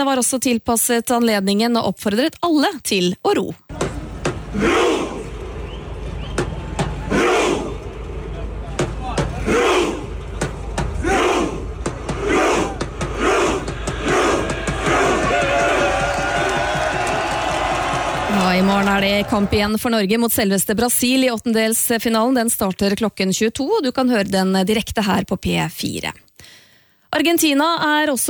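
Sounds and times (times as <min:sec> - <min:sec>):
speech: 0:00.0 - 0:03.7, 0:04.6 - 0:04.9, 0:19.0 - 0:26.2, 0:27.1 - 0:28.2
large crowd cheering: 0:03.7 - 0:19.9
football supporters chanting in unison in a square: 0:04.3 - 0:05.8, 0:06.9 - 0:07.9, 0:09.1 - 0:10.2, 0:10.9 - 0:19.8
people clapping: 0:13.9 - 0:19.8.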